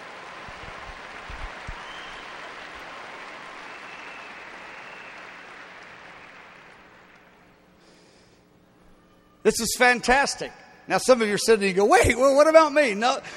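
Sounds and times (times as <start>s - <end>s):
audience clapping: 0.0s - 7.6s
speech: 9.4s - 13.3s.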